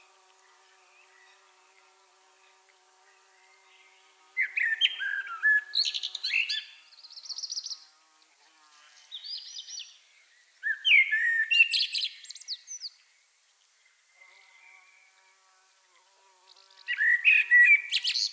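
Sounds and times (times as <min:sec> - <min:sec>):
common blackbird singing: 0:04.4 - 0:07.8, 0:10.6 - 0:13.0, 0:16.9 - 0:18.3.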